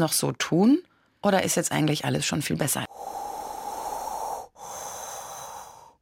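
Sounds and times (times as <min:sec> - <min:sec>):
speech: 0:00.0 - 0:03.2
breathing in and out: 0:02.9 - 0:06.0.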